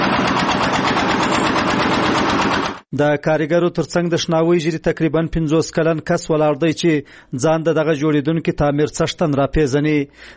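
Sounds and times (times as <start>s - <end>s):
engine drone of a machine lifting bricks at a building site in cold weather: 0.0s - 2.8s
speech: 3.0s - 10.3s.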